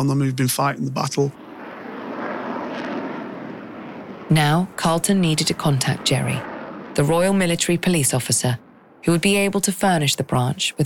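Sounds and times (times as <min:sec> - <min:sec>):
speech: 0:00.0 - 0:01.4, 0:04.3 - 0:10.8
air transports screaming onto the tarmac: 0:00.0 - 0:07.8.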